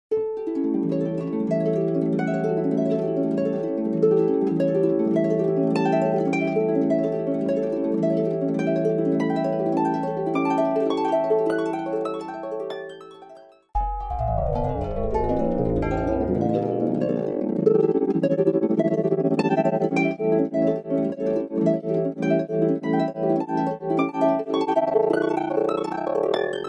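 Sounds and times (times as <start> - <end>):
harp: 0.1 - 26.6.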